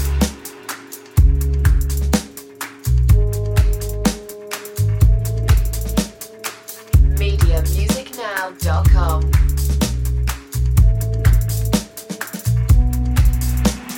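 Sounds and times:
bass: 0:00.0 - 0:00.4, 0:01.2 - 0:02.3, 0:02.9 - 0:06.2, 0:07.0 - 0:08.0, 0:08.6 - 0:13.9
drums: 0:00.0 - 0:13.9.

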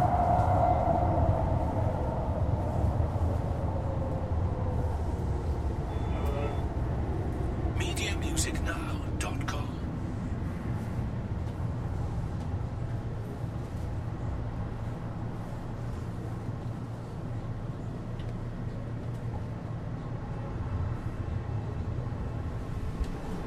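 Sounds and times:
electric subway trains arriving and leaving: 0:00.0 - 0:23.4.

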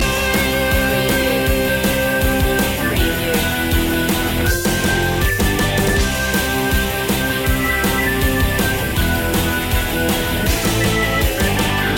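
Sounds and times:
punky loop: 0:00.0 - 0:11.9.

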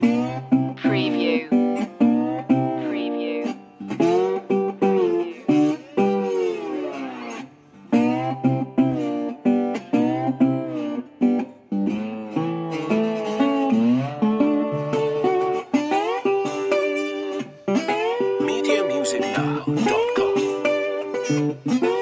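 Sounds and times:
blues music loop: 0:00.0 - 0:21.9.

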